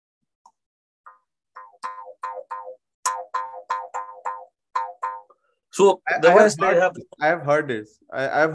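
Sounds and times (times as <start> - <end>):
twanging bamboo folk instrument being played: 1.1 - 5.4
speech: 5.8 - 8.5.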